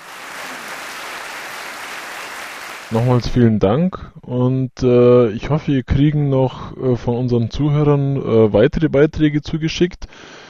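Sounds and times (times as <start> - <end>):
applause after a poem recitation: 0.0 - 3.1
speech: 2.9 - 10.4.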